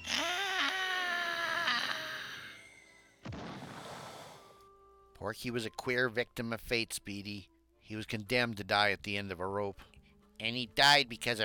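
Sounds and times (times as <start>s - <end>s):
man's despairing shriek while falling: 0.0s - 2.7s
speech: 5.2s - 11.4s.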